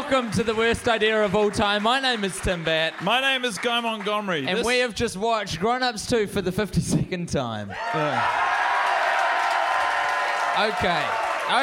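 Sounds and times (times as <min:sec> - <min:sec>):
audience applause: 0:00.0 - 0:04.8, 0:07.8 - 0:11.6
speech: 0:00.1 - 0:08.6, 0:10.6 - 0:11.6.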